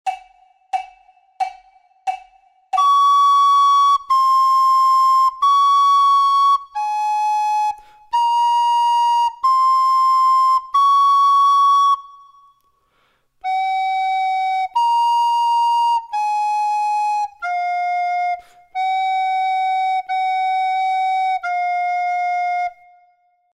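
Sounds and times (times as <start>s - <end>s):
flute duet: 0.1s - 23.5s.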